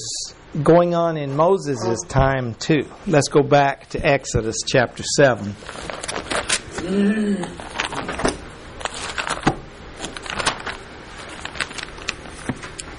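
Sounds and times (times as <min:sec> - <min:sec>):
speech: 0:00.5 - 0:06.1, 0:06.9 - 0:07.7
Bible pages turning: 0:05.6 - 0:06.8, 0:07.6 - 0:12.9.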